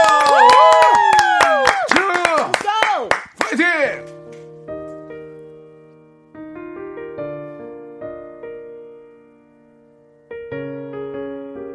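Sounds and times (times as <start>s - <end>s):
excited crowd shouts and whoops: 0.0s - 1.9s
audience clapping: 0.0s - 4.1s.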